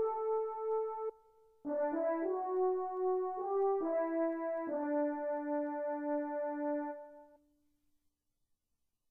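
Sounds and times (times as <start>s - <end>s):
French horn melody: 0.0s - 1.1s, 1.7s - 7.2s.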